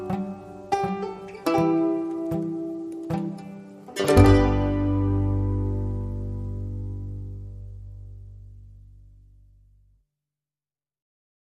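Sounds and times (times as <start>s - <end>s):
banjo: 0.0s - 8.8s.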